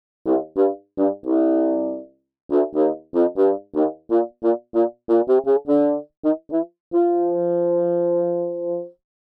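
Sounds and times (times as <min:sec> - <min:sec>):
bassoon: 0:00.3 - 0:09.0.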